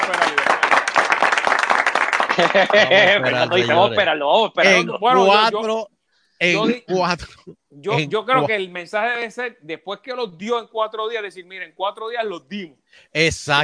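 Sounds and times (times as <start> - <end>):
small audience clapping: 0.0 - 4.0
laughter: 2.2 - 4.1, 4.7 - 5.5, 6.6 - 8.5
speech: 2.4 - 13.6.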